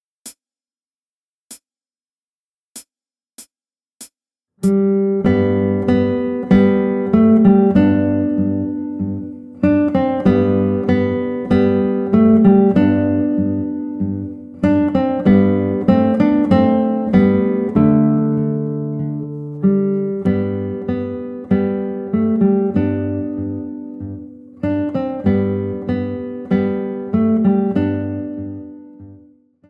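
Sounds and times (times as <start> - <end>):
guitar piece: 4.6 - 29.6.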